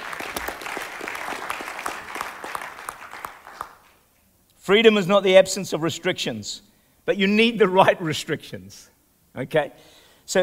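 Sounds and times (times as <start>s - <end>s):
audience applause: 0.0s - 4.0s
speech: 4.7s - 10.4s.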